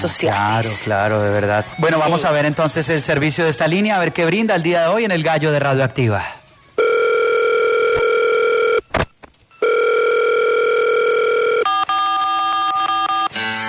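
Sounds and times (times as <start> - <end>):
speech: 0.0 - 6.4
telephone line ringing before answering machine: 6.8 - 8.8, 9.6 - 13.3.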